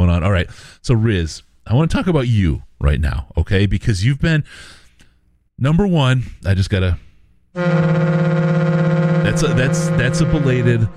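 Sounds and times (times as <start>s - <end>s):
speech: 0.2s - 4.8s, 5.6s - 7.0s, 7.6s - 8.4s, 9.3s - 10.9s
boat horn blaring: 7.6s - 10.9s.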